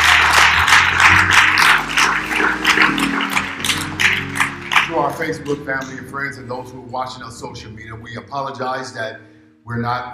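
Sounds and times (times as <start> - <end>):
audience applause: 0.0 - 5.4
speech: 5.2 - 10.1.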